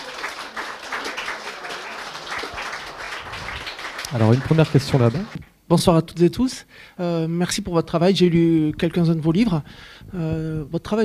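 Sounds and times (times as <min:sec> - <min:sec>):
audience applause: 0:00.0 - 0:05.4
speech: 0:04.1 - 0:11.0.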